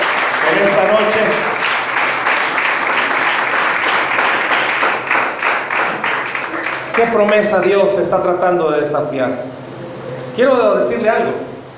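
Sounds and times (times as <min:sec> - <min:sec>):
crowd applause: 0:00.0 - 0:07.7
speech: 0:00.5 - 0:01.5, 0:07.0 - 0:09.6, 0:10.4 - 0:11.4.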